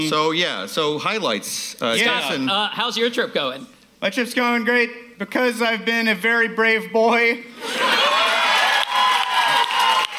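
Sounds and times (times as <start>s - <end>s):
speech: 0.0s - 7.9s
cheering: 7.6s - 10.1s
applause: 8.0s - 10.1s.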